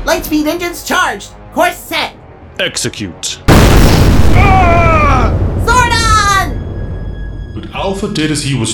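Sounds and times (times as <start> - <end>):
speech: 0.1 - 3.5, 7.6 - 8.7
sci-fi explosion hitting a spaceship: 3.5 - 7.1.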